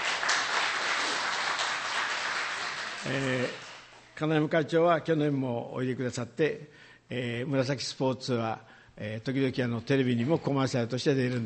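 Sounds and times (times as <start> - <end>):
audience applause: 0.0 - 3.9
speech: 3.0 - 3.6, 4.2 - 11.4.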